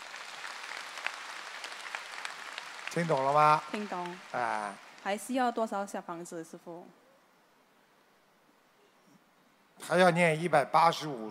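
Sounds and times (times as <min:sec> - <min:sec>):
audience applause at an indoor talk session: 0:00.0 - 0:05.6
speech: 0:02.9 - 0:07.0, 0:09.9 - 0:11.2.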